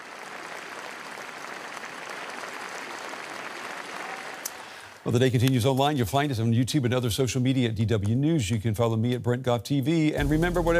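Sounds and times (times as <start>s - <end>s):
crowd gathered at royal palace applauding: 0.0s - 5.2s
speech: 5.0s - 10.7s.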